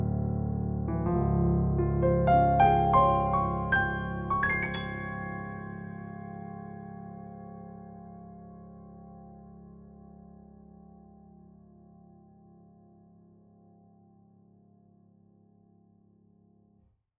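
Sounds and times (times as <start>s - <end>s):
Bosendorfer piano improvisation: 0.0s - 10.6s.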